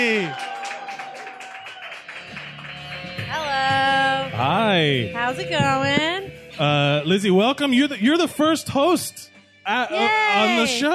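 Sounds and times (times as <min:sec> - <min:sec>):
speech: 0:00.0 - 0:00.5, 0:04.4 - 0:10.9
audience applause greeting a performer coming on stage: 0:00.0 - 0:03.8.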